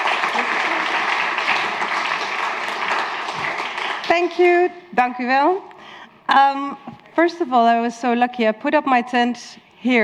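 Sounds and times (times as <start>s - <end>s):
audience applause: 0.0s - 4.1s
speech: 4.1s - 5.7s, 6.3s - 10.0s.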